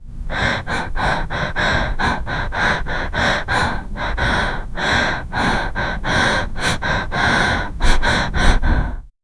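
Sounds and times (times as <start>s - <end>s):
woman breathing after exercise: 0.1s - 9.1s.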